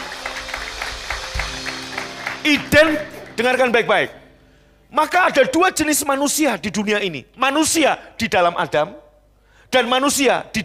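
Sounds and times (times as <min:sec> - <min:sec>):
audience applause: 0:00.0 - 0:03.3
speech: 0:02.4 - 0:04.2, 0:04.9 - 0:09.0, 0:09.7 - 0:10.6.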